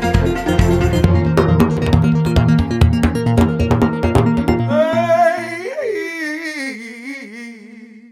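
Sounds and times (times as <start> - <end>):
exotic synth instrumental music: 0.0 - 5.6.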